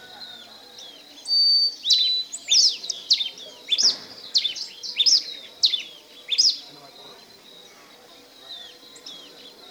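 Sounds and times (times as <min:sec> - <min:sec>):
red pileated finch singing in Ecuador: 0:00.0 - 0:09.7.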